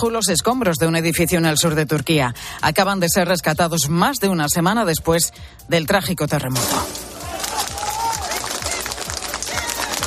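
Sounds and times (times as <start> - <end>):
speech: 0.0 - 7.0
crowd of firefighters clapping to celebrate a rescue: 7.1 - 10.0.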